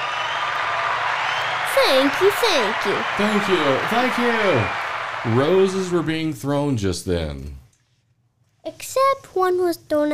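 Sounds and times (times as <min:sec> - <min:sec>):
crowd applause: 0:00.0 - 0:06.7
voices calling out: 0:01.4 - 0:06.3
speech: 0:01.8 - 0:07.6, 0:08.7 - 0:10.1.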